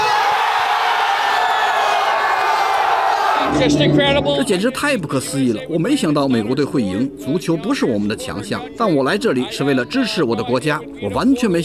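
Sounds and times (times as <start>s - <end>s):
stadium crowd cheering ecstatically: 0.0s - 4.6s
speech: 3.6s - 11.6s.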